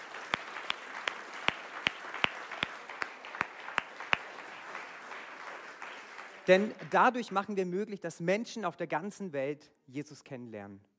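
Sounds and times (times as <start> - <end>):
audience applause: 0.0 - 7.0
speech: 6.5 - 10.9.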